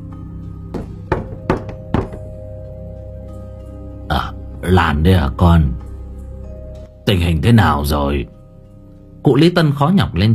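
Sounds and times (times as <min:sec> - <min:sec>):
knocking on a door: 0:00.7 - 0:02.4
speech: 0:04.6 - 0:05.8, 0:07.1 - 0:08.4, 0:09.2 - 0:10.3.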